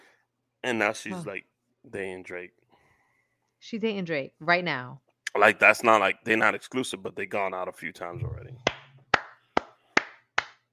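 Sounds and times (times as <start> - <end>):
speech: 0.6 - 2.6, 3.6 - 8.6
clapping: 8.6 - 10.7.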